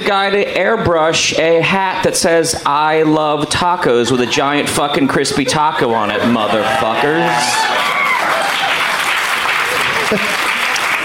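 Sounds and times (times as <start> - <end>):
speech: 0.1 - 8.1, 10.1 - 10.4
laughter: 3.9 - 11.0
audience applause: 6.2 - 11.0.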